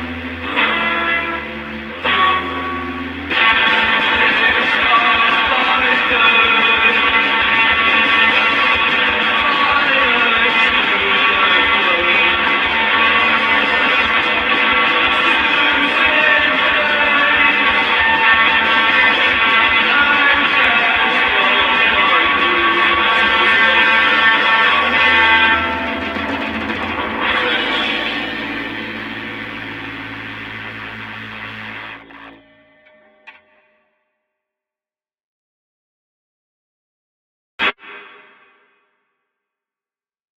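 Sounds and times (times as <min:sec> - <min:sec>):
music from a radio: 0:00.0 - 0:32.3.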